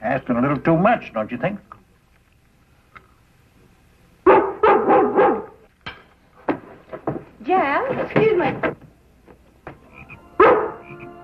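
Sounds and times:
speech: 0.1 - 1.8, 8.1 - 8.8
dog barking: 4.2 - 5.6, 10.4 - 10.9.

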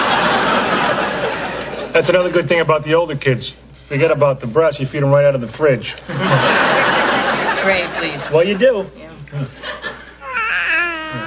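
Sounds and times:
laughter: 0.0 - 2.0, 6.0 - 10.2
hum: 0.0 - 11.2
speech: 2.0 - 6.9, 7.6 - 9.9
baby whimpering: 10.2 - 11.2.

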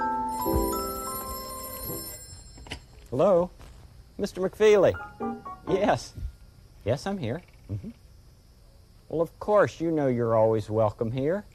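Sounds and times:
telephone ringing: 0.0 - 3.0
speech: 3.1 - 3.6, 4.2 - 6.2, 6.8 - 8.0, 9.1 - 11.5.

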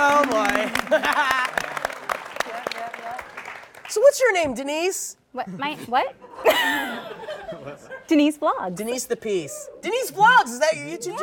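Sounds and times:
audience clapping for a guest: 0.0 - 4.3
laughter: 0.5 - 1.8, 6.2 - 8.2
speech: 4.2 - 11.2.

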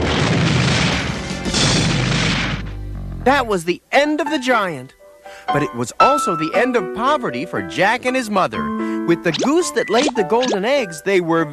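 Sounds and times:
beanstalk toppling and crashing down: 0.0 - 2.8
speech: 3.2 - 11.5.

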